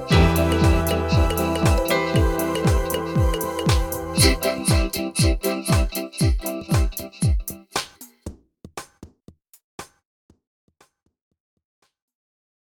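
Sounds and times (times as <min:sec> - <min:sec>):
instrumental music: 0:00.0 - 0:08.1.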